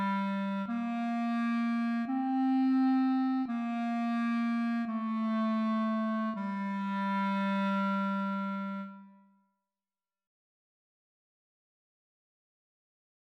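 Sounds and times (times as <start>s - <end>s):
cantus firmus melody: 0.0s - 9.1s.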